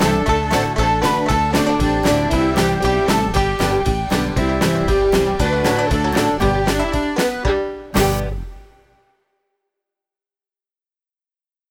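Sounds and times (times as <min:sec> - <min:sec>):
karaoke singing: 0:00.0 - 0:08.8.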